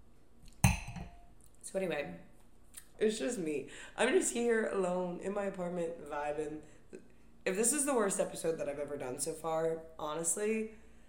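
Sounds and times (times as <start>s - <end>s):
wine glass clink while taking a sip: 0.6s - 1.3s
speech: 1.7s - 2.3s, 3.0s - 10.8s.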